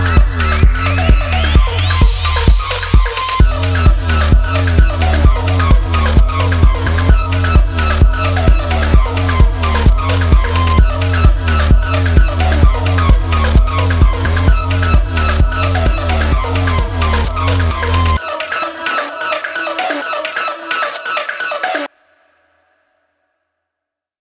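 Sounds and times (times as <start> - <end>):
electronic techno song: 0.0 - 21.9.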